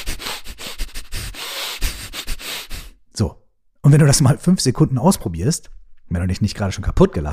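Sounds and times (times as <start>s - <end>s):
fast chaotic breathing through the nose: 0.0s - 3.0s
speech: 3.2s - 7.3s.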